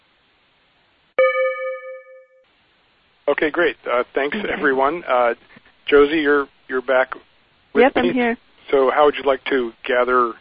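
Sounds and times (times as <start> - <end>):
bell chime signalling start of groups: 1.2 - 2.4
speech: 3.3 - 10.3.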